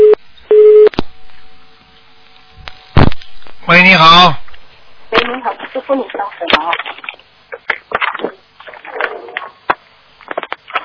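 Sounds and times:
phone line busy tone after a disconnection: 0.0 - 0.9
speech: 3.7 - 4.4, 5.2 - 7.0.

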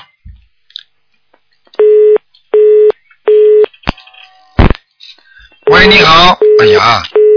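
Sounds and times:
dropped-call telephone tone beeps: 1.8 - 3.7, 5.7 - 7.3
speech: 5.9 - 7.2.

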